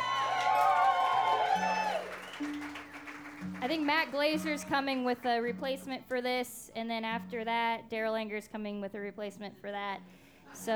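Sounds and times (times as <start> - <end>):
audience applause and cheering: 0.0 - 4.7
speech: 3.6 - 10.7.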